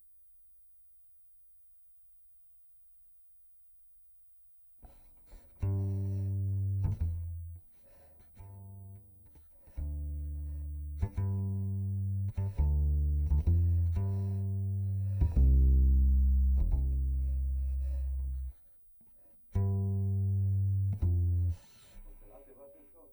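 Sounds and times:
direct-input contrabass: 0:04.9 - 0:18.6, 0:19.6 - 0:22.3.

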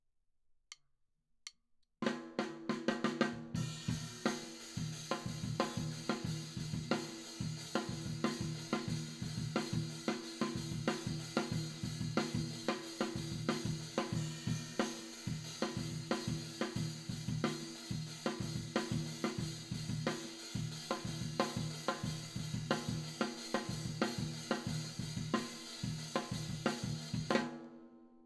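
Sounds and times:
tom drum: 0:02.0 - 0:27.6.

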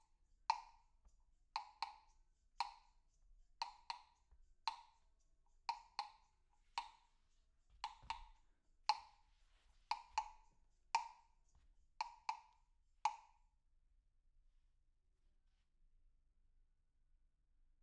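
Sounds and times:
percussion recorded with overhead microphones: 0:00.0 - 0:13.4.

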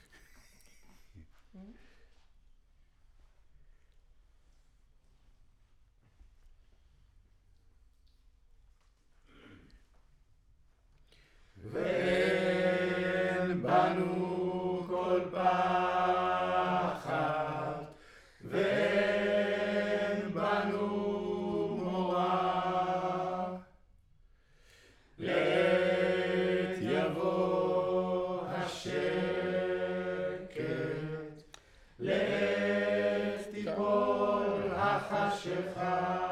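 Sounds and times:
choir singing: 0:11.6 - 0:23.8, 0:25.2 - 0:36.3.

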